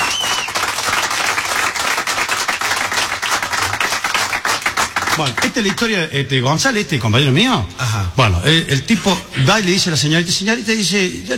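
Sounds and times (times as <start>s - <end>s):
audience applause: 0.0s - 5.9s
speech: 5.2s - 11.3s.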